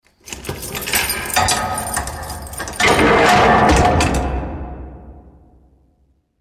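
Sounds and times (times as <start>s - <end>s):
prison doors opening: 0.0s - 5.4s.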